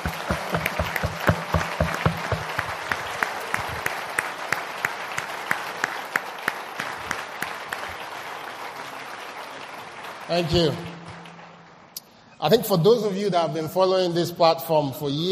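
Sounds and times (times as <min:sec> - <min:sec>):
sizeable audience standing ovation applause: 0:00.0 - 0:12.0
speech: 0:10.3 - 0:10.9, 0:12.4 - 0:15.2.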